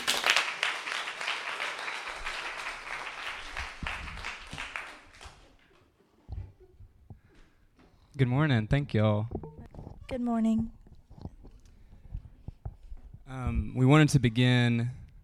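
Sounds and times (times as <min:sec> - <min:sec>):
audience applause: 0:00.0 - 0:05.6
speech: 0:08.2 - 0:09.4, 0:10.1 - 0:10.8, 0:13.8 - 0:15.0
low thumps: 0:08.6 - 0:14.1.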